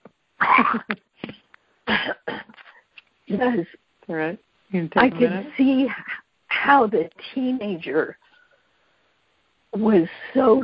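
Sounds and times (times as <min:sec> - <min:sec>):
person coughing while choking on a piece of something: 0:00.4 - 0:02.8
speech: 0:00.7 - 0:01.0, 0:03.3 - 0:08.2, 0:09.8 - 0:10.6.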